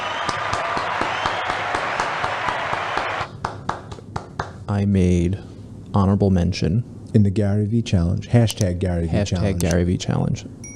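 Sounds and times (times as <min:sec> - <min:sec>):
applause sound effect: 0:00.0 - 0:04.6
speech: 0:04.7 - 0:10.7.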